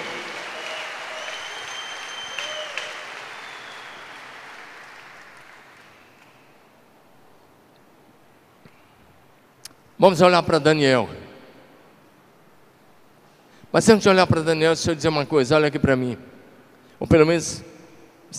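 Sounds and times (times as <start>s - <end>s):
audience applauding: 0.0s - 6.6s
faint whistles from an audience: 0.5s - 6.6s
speech: 10.0s - 11.2s, 13.8s - 16.3s, 17.0s - 17.7s.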